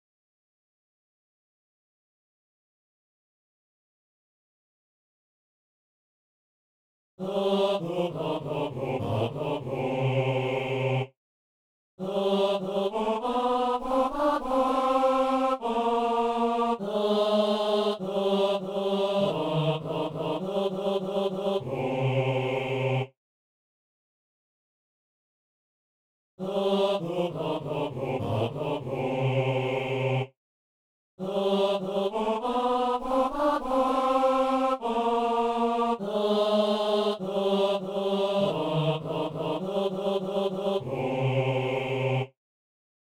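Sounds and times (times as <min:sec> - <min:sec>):
men singing a hymn: 0:07.2 - 0:11.1, 0:12.0 - 0:23.1, 0:26.4 - 0:30.3, 0:31.2 - 0:42.3.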